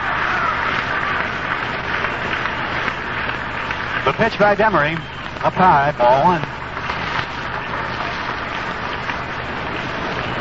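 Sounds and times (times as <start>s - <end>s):
baseball stadium crowd coming to life: 0.0s - 10.3s
speech: 4.1s - 6.5s.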